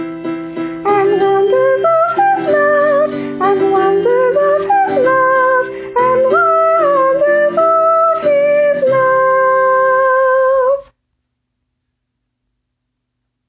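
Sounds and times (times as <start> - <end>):
soprano singing a Christmas carol: 0.8 - 10.9.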